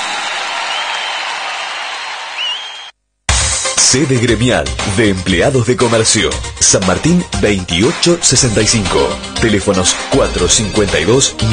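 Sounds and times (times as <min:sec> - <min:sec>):
audience applause for a live band: 0:00.0 - 0:02.9
speech: 0:03.8 - 0:11.5.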